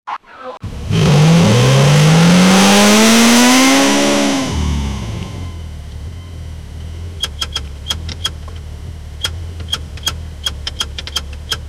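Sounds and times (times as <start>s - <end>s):
automobile in desert heat: 0.6s - 11.6s.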